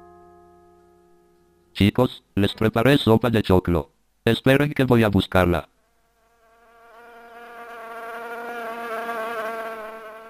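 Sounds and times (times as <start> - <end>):
speech: 1.8 - 5.7
fly buzzing near a bowl of corn soup: 6.0 - 10.2.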